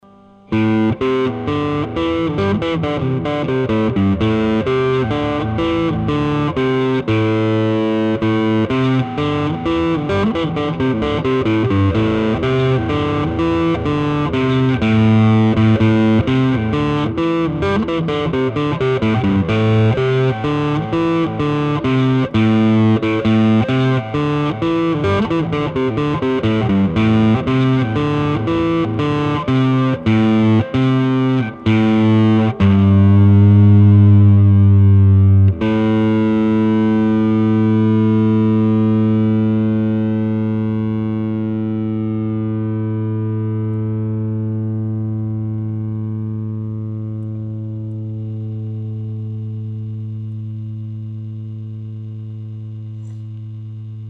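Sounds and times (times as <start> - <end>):
guitar: 0.0 - 54.0.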